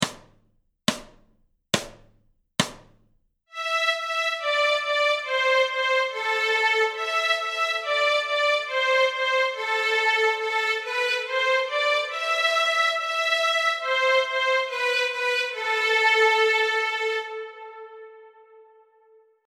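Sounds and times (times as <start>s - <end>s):
fiddle playing a bowed tune in A minor: 3.5s - 19.1s.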